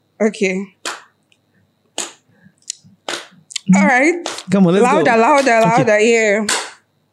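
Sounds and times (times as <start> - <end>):
speech: 0.2 - 0.8, 3.7 - 6.6
sharp loud hand claps: 0.8 - 1.1, 2.0 - 2.2, 3.1 - 3.4, 4.2 - 4.5, 5.3 - 5.9, 6.5 - 6.8.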